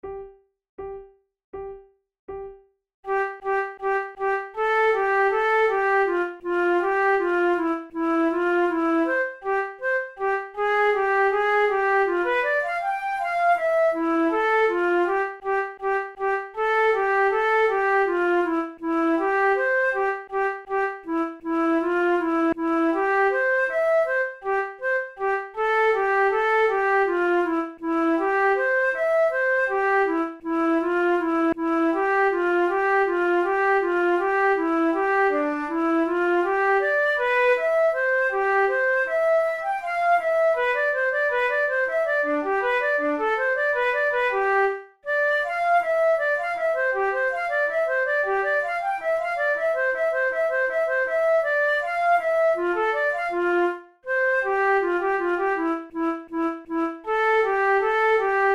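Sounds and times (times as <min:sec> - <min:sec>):
flute duet: 0:03.1 - 0:58.5.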